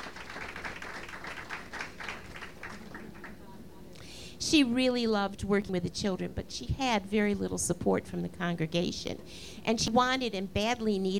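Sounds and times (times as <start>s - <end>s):
audience applause: 0.0s - 3.4s
speech: 4.5s - 11.1s.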